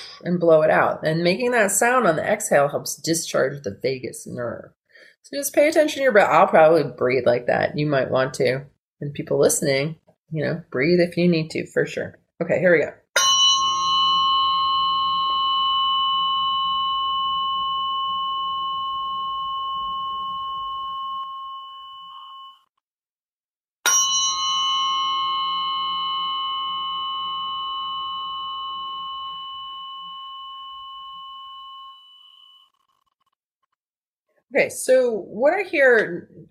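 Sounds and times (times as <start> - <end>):
speech: 0.2 - 13.0, 34.6 - 36.4
struck tuning forks ringing: 13.2 - 22.7, 23.9 - 33.4.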